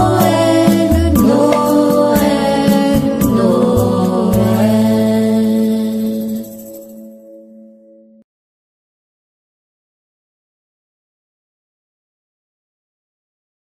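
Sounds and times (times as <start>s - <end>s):
jazz Christmas music: 0.0s - 8.1s.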